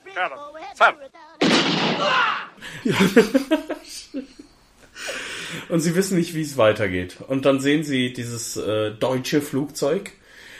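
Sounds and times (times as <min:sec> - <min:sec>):
speech: 0:00.2 - 0:04.4, 0:05.7 - 0:10.2
gunshot in a film scene: 0:01.4 - 0:02.5
laughter: 0:02.0 - 0:04.5.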